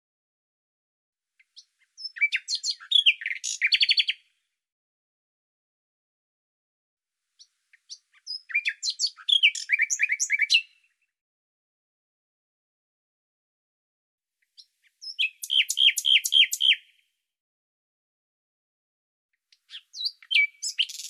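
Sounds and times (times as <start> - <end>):
bird song chirps and trills: 1.4 - 4.4, 7.4 - 11.1, 14.4 - 17.1, 19.4 - 21.0.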